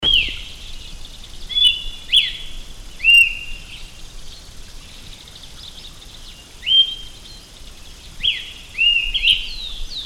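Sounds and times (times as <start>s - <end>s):
austral thrush singing high rising whistled notes: 0.0s - 3.9s, 6.6s - 7.4s, 8.2s - 10.0s.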